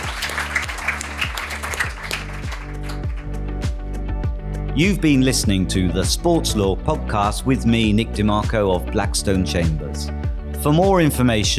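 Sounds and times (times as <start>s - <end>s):
audience applause: 0.0s - 3.3s
speech: 4.8s - 11.5s.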